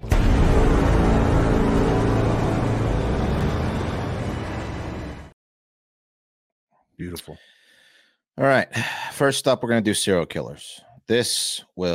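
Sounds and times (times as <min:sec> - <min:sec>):
loud car engine roaring: 0:00.0 - 0:05.3
speech: 0:07.0 - 0:07.6, 0:08.4 - 0:11.9.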